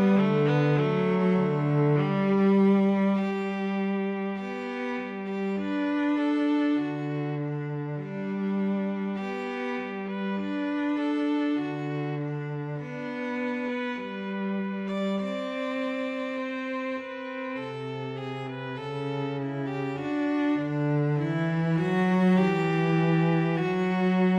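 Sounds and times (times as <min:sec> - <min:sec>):
viola and cello duet playing a wedding march: 0:00.0 - 0:24.3.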